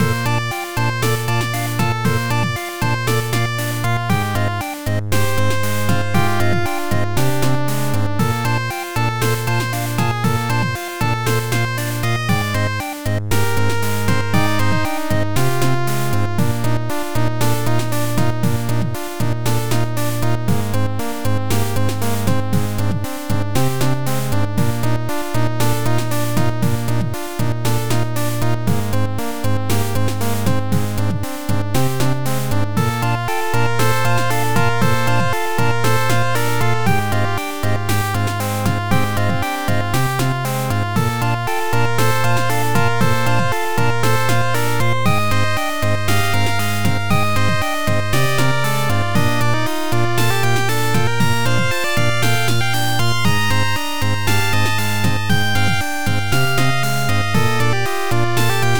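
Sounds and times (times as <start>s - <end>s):
internal percussion: 0.0s - 58.7s.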